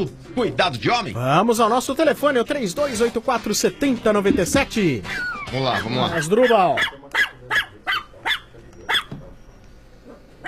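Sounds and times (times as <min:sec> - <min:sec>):
speech: 0:00.0 - 0:07.0
small pinscher dog barking: 0:05.8 - 0:09.2.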